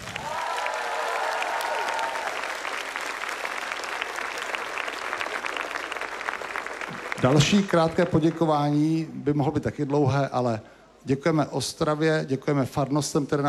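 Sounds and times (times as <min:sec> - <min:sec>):
short audience applause: 0:00.0 - 0:09.1
speech: 0:07.2 - 0:13.4.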